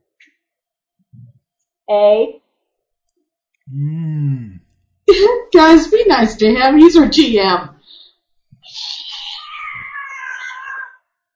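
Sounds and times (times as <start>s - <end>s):
speech: 1.9s - 2.4s, 3.7s - 4.5s, 5.2s - 7.7s
cat meowing: 9.4s - 11.0s.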